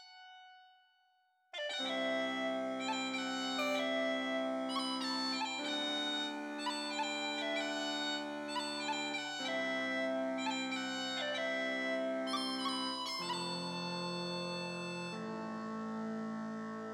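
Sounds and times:
uilleann pipes melody: 1.6 - 16.9.

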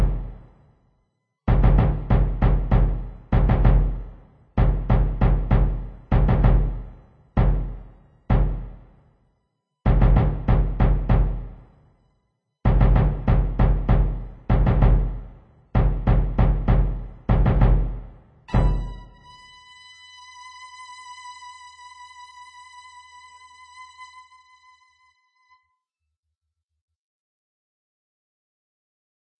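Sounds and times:
drums: 0.0 - 0.5, 1.5 - 9.0, 9.9 - 11.9, 12.7 - 19.3
violin: 18.5 - 25.6.

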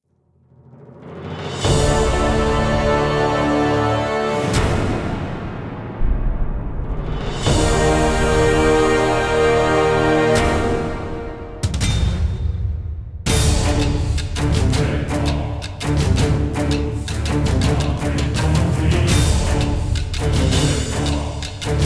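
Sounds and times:
music: 0.1 - 21.8.

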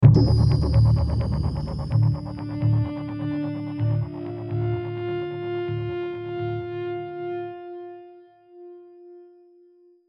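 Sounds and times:
outro music: 0.0 - 7.2.

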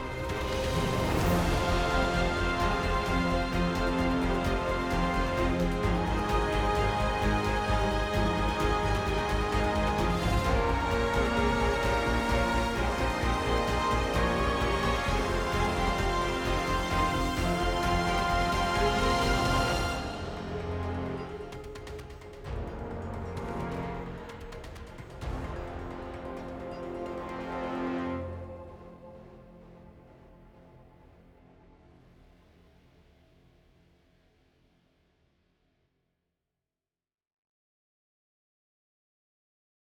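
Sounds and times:
in-game battle start music: 0.1 - 28.5.

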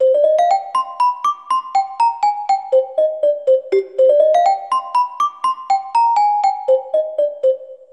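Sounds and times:
celesta: 0.0 - 7.9.

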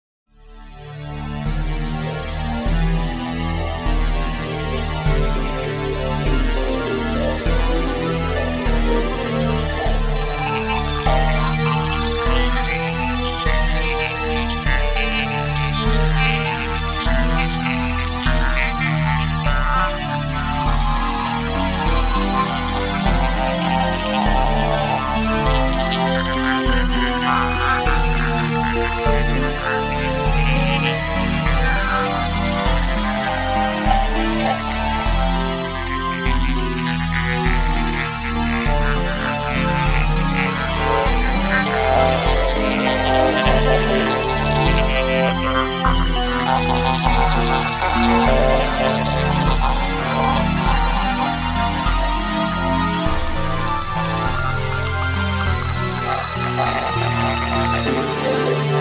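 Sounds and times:
east romantic electro interlude: 0.5 - 58.8.

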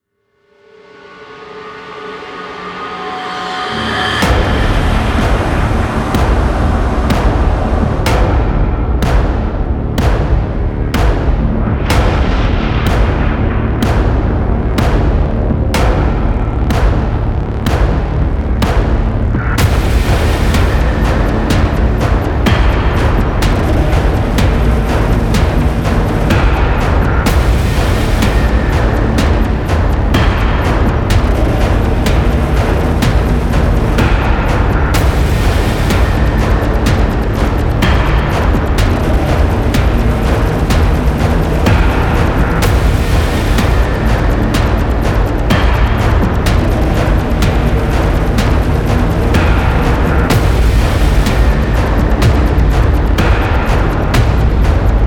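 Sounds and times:
main ambience: 0.4 - 55.0.

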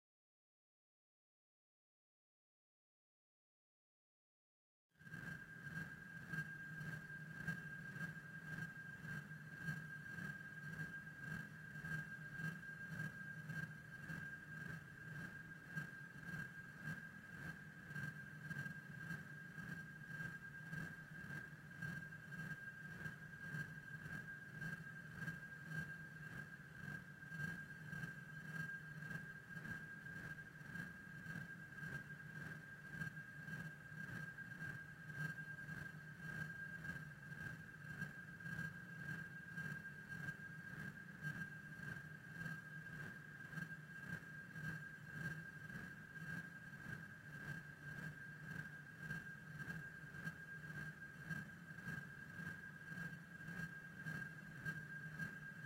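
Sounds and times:
noise: 5.0 - 55.6.

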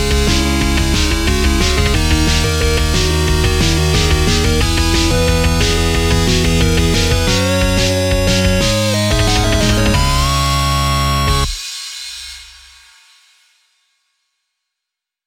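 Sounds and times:
8-bit chiptune music: 0.0 - 11.6.

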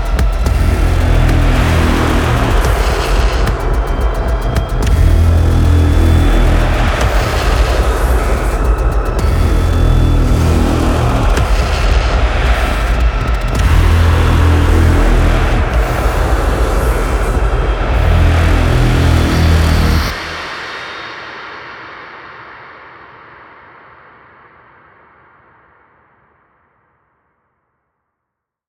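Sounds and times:
main ambient music: 0.0 - 21.4.

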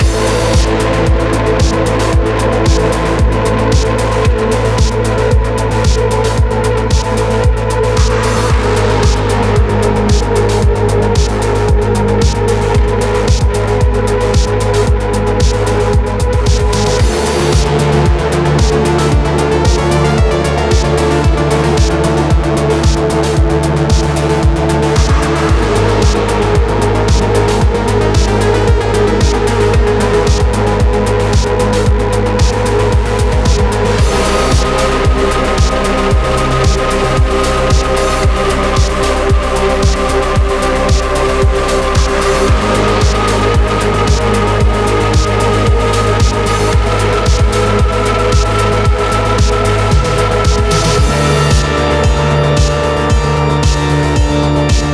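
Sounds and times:
level 1 boss video game music: 0.0 - 54.9.

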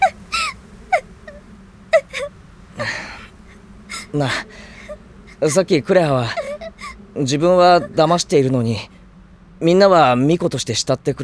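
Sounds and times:
person crying with sobs and whimpering gasps: 0.0 - 1.4, 2.0 - 3.3, 3.9 - 8.3
laughter: 0.0 - 8.9
speech: 4.1 - 4.7, 5.4 - 6.4, 7.2 - 8.9, 9.6 - 11.2.

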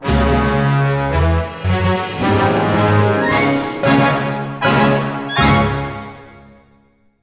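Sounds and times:
victory outro music: 0.1 - 5.3.

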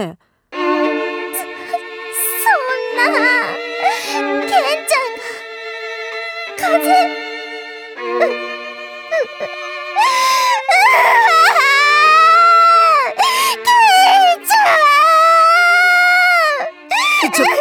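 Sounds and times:
speech: 0.0 - 0.3, 3.0 - 3.4, 6.7 - 7.2
girl crying loudly with wailing sobs: 1.4 - 5.4, 6.6 - 7.1, 9.2 - 17.5.

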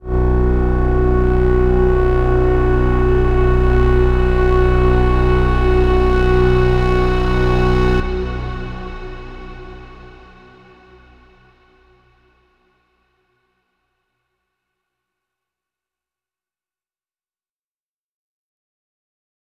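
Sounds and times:
overlay drone: 0.0 - 12.2.

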